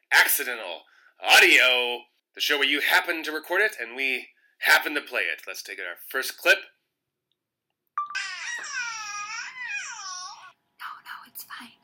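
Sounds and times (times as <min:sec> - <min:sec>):
speech: 0:00.2 - 0:06.8
baby babbling: 0:08.1 - 0:10.6.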